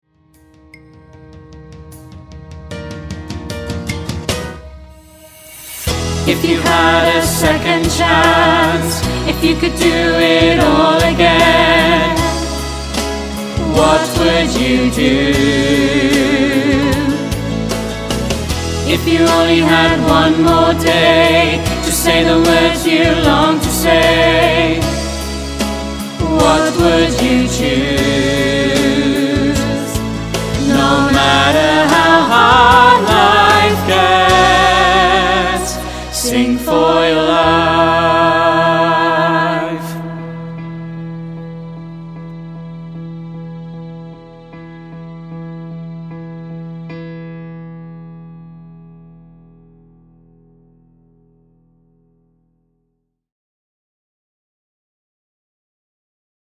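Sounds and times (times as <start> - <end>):
semi chorus singing: 5.4 - 41.1.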